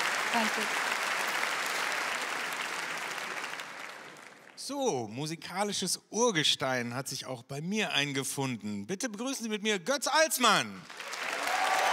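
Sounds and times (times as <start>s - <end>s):
audience applause: 0.0s - 4.7s, 10.8s - 11.9s
speech: 0.4s - 0.9s, 4.6s - 11.1s.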